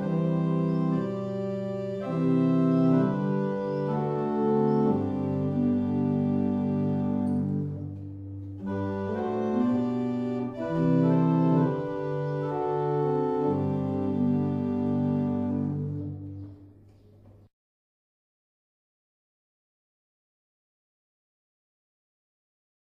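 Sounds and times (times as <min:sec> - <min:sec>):
barrel organ: 0:00.0 - 0:17.5.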